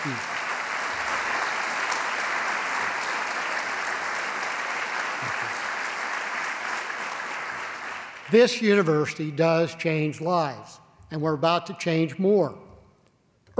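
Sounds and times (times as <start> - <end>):
speech: 0.0 - 0.4, 8.3 - 12.6
crowd applauding: 0.0 - 9.0.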